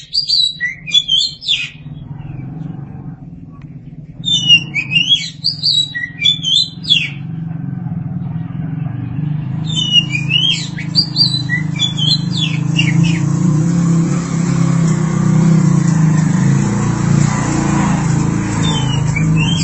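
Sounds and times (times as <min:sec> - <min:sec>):
Oriental magpie-robin song: 0:00.0 - 0:02.8, 0:03.8 - 0:07.5, 0:08.1 - 0:13.7, 0:18.5 - 0:19.6
low rumble: 0:01.6 - 0:19.6.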